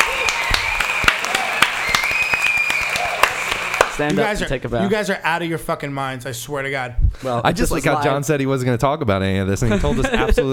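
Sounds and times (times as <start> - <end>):
audience clapping: 0.0 - 4.4
speech: 4.0 - 10.5.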